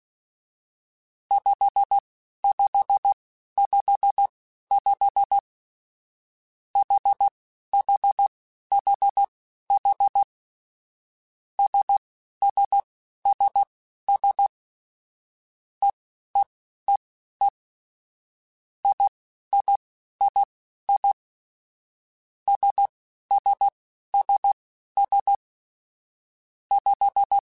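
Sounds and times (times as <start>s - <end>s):
morse code beeps: 1.3s - 5.5s, 6.8s - 10.3s, 11.6s - 14.5s, 18.9s - 21.2s, 22.5s - 25.4s, 26.8s - 27.4s.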